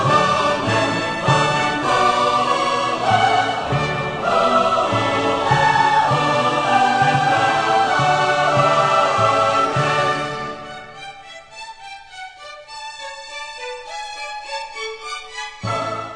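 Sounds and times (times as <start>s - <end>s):
choir singing: 0.0s - 11.0s, 15.6s - 16.1s
orchestra playing: 0.0s - 16.1s.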